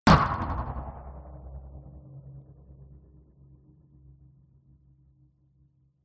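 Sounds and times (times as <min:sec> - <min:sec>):
sharp metallic impact hit: 0:00.1 - 0:01.6.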